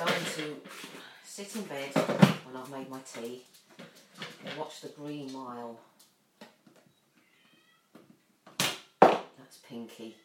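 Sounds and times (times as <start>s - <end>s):
speech: 0.0s - 3.6s, 4.4s - 5.9s, 9.5s - 10.2s
cat meowing loudly: 7.2s - 8.0s.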